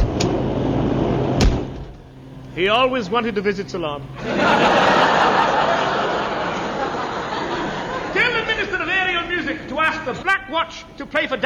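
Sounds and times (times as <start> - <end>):
door opening and shutting: 0.0 - 2.6
steady rumbling noise: 0.0 - 11.4
speech: 2.6 - 5.5, 9.7 - 11.4
laughter: 4.1 - 10.2.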